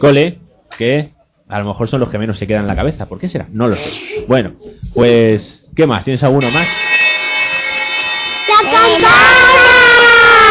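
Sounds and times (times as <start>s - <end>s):
speech: 0.0s - 6.9s, 8.6s - 9.6s
school bell ringing: 6.4s - 10.4s.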